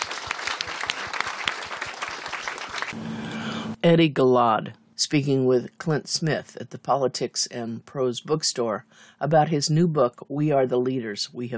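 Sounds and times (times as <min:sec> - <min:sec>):
crowd applauding: 0:00.0 - 0:03.8
speech: 0:03.8 - 0:11.5.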